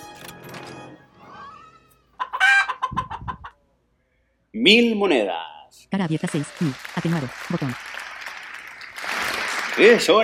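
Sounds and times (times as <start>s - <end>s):
chicken clucking: 2.1s - 3.6s
speech: 4.6s - 7.9s, 9.8s - 10.2s.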